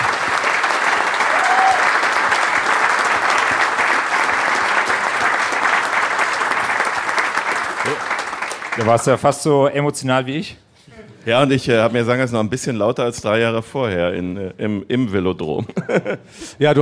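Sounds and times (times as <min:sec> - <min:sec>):
applause: 0:00.0 - 0:09.4
speech: 0:08.8 - 0:10.6, 0:11.2 - 0:16.8.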